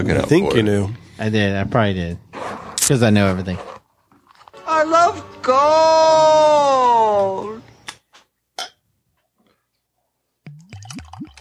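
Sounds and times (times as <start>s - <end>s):
speech: 0.0s - 2.2s, 2.8s - 3.7s, 4.8s - 7.6s
beer glugging out of a growler jug: 10.5s - 11.3s.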